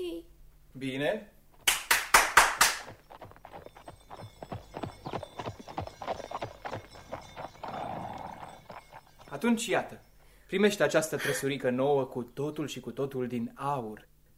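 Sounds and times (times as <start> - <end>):
speech: 0.8 - 1.4, 9.4 - 14.1
horse hooves clip-clopping: 1.5 - 11.1.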